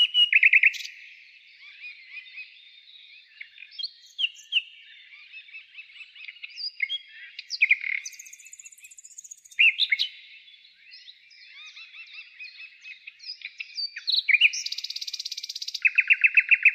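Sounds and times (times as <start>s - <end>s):
birds in spring nature: 0.0s - 16.7s.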